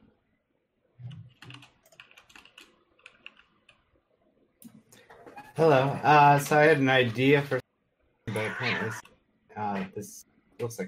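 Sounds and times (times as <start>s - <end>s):
typing on a computer keyboard: 1.3s - 3.8s
speech: 5.6s - 7.6s, 8.6s - 9.1s, 9.8s - 10.8s.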